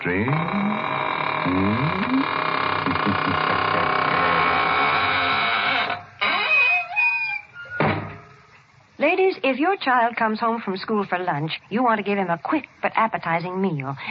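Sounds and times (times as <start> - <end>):
speech: 0.0 - 1.8, 9.6 - 14.0
buzzing hum: 0.0 - 7.0
squeaking door closing: 0.0 - 8.5.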